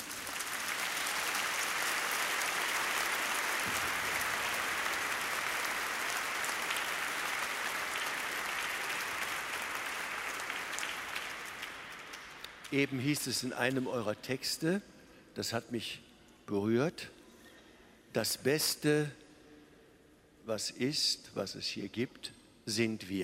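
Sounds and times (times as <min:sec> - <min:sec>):
audience applause: 0:00.0 - 0:12.9
speech: 0:12.7 - 0:17.2, 0:18.1 - 0:19.2, 0:20.5 - 0:23.2.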